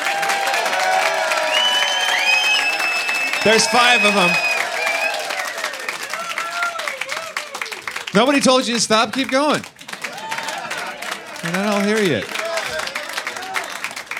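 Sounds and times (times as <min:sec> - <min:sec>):
audience applause and cheering: 0:00.0 - 0:14.1
speech: 0:03.4 - 0:04.5, 0:08.2 - 0:09.7, 0:11.5 - 0:12.3.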